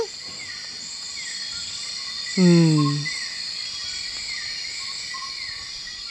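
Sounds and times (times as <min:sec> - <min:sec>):
insect chirping and buzzing in a nighttime rainforest: 0:00.0 - 0:06.1
speech: 0:02.4 - 0:03.1
voice murmuring: 0:02.4 - 0:03.1.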